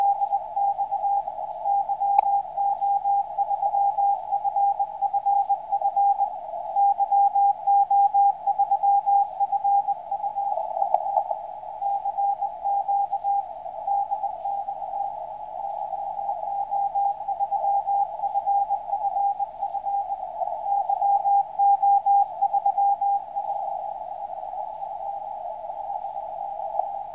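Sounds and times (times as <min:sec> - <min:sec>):
radio signals on the 160m band: 0:00.0 - 0:27.1.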